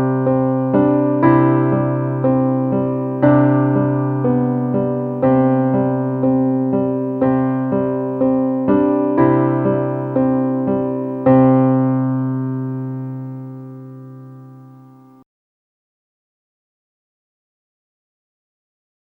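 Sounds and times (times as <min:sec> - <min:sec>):
solo piano: 0:00.0 - 0:15.2.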